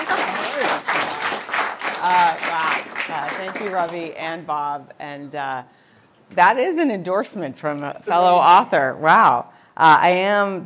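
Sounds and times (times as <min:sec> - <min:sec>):
audience applause: 0:00.0 - 0:04.1
speech: 0:02.1 - 0:10.6.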